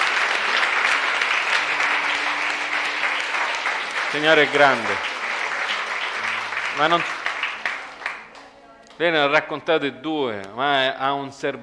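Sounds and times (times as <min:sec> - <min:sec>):
audience applause: 0:00.0 - 0:08.5
speech: 0:04.1 - 0:05.1, 0:06.8 - 0:07.2, 0:09.0 - 0:11.6.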